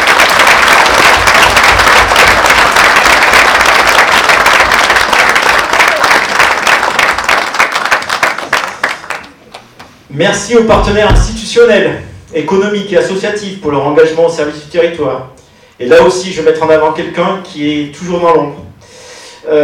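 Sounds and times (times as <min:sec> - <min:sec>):
audience applause: 0:00.0 - 0:09.4
speech: 0:10.2 - 0:18.6, 0:19.4 - 0:19.6.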